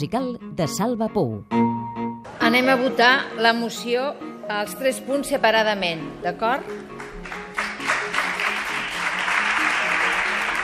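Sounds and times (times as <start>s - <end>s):
speech: 0.0s - 1.6s, 2.5s - 7.1s
ovation in a parliament chamber: 6.7s - 10.6s.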